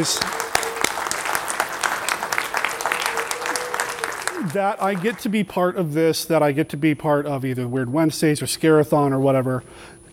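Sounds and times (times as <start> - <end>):
speech: 0.0 - 0.4, 4.4 - 10.1
audience clapping at a movie screening: 0.0 - 5.5.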